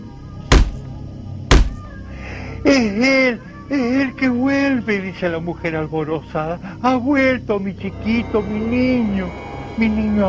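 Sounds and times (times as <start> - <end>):
heavy knocking on a door: 0.5 - 0.8, 1.5 - 1.8
speech: 2.6 - 10.2.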